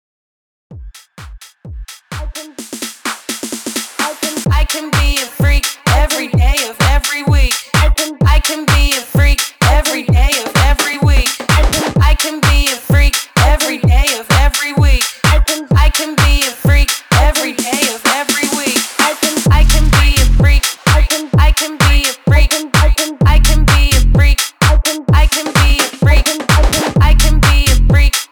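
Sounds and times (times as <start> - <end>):
128 BPM hype music: 0.7 - 28.3.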